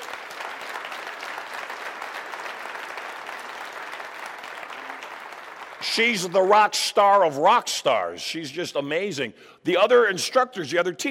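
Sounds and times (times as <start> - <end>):
audience applause: 0.0 - 6.7
speech: 5.8 - 11.1.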